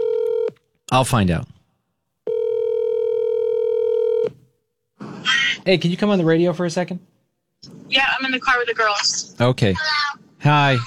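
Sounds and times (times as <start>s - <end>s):
phone call dialing tone: 0.0s - 0.6s, 2.3s - 4.3s
speech: 0.9s - 1.6s, 5.6s - 7.1s, 7.9s - 10.8s.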